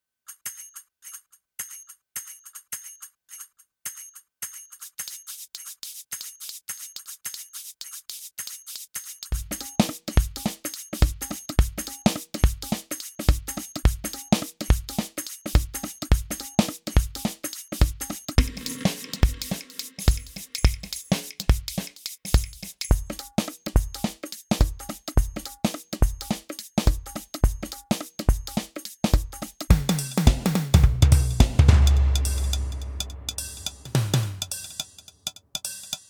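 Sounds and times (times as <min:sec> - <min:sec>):
drums: 0:09.2 - 0:36.0.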